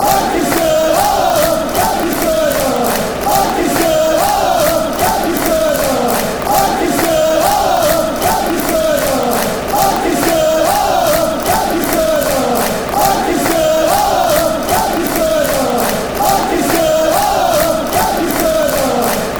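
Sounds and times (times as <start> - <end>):
Lancashire football fans chanting la la la: 0.0 - 19.3.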